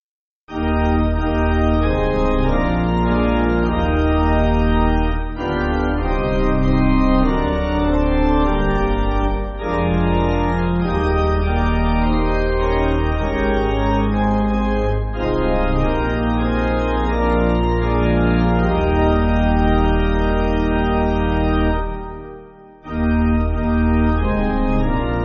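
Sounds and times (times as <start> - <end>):
pipe organ backing music: 0.5 - 25.2.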